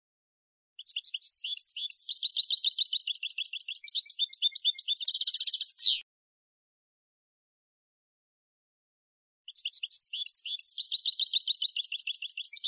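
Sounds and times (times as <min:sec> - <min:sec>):
European goldfinch Carduelis carduelis twittering: 0:01.2 - 0:06.0, 0:09.9 - 0:12.6.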